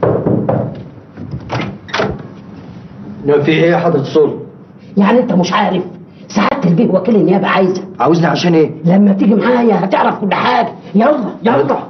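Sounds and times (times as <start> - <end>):
door being opened inside a home: 0.0 - 2.3
speech: 3.2 - 4.4, 5.0 - 11.8.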